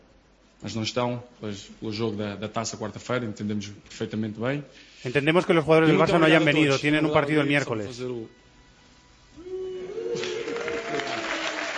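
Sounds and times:
speech: 0.6 - 8.4
audience applause: 9.8 - 11.7.

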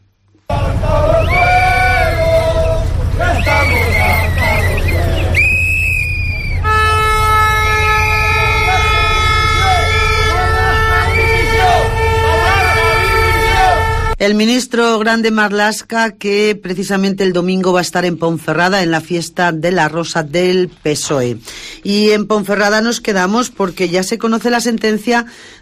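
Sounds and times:
protest crowd shouting and chanting: 0.5 - 5.6, 7.7 - 14.2
air horns blaring: 0.5 - 14.2
whistles shrilling: 1.1 - 13.6
speech: 14.2 - 25.6.

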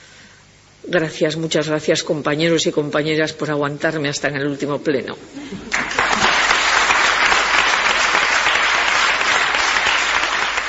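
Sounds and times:
speech: 0.8 - 6.0
applause in a parliament plenary: 5.7 - 10.6.

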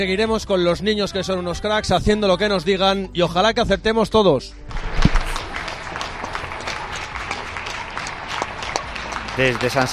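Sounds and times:
speech: 0.0 - 5.0, 9.4 - 9.9
people applauding from balconies: 4.7 - 9.9.

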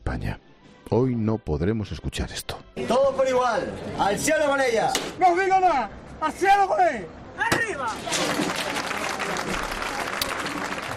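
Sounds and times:
speech: 0.1 - 9.8
crowd applause at a procession: 7.9 - 10.9.

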